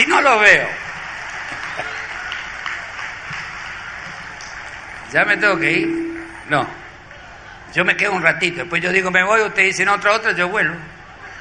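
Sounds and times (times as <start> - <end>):
speech: 0.1 - 0.8, 5.1 - 6.8, 7.7 - 10.9
audience applause: 0.8 - 5.1.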